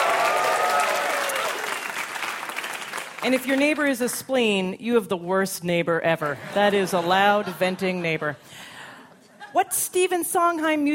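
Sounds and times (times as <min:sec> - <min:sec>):
hands clapping in response to a kids' song: 0:00.0 - 0:03.8
speech: 0:03.2 - 0:08.7, 0:09.5 - 0:10.9.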